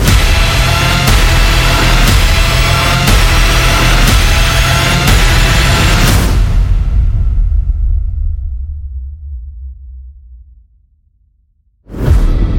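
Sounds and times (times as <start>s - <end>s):
epic instrumental music: 0.0s - 9.1s, 11.9s - 12.5s.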